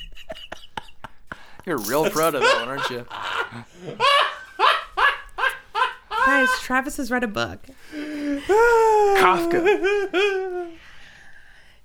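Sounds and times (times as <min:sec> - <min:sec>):
speech: 0:01.6 - 0:04.2, 0:06.3 - 0:10.4
sneeze: 0:01.8 - 0:02.4.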